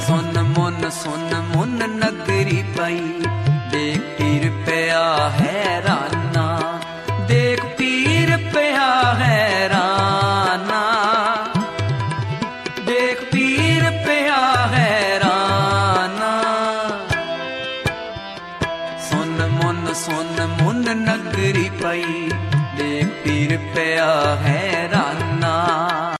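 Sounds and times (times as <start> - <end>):
Gurbani devotional singing: 0.0 - 12.2, 12.8 - 17.6, 19.0 - 26.1.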